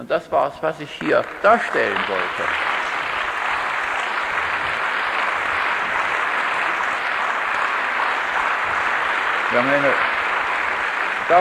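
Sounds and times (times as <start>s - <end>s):
speech: 0.0s - 2.7s, 9.5s - 10.1s
audience applause: 0.9s - 11.3s.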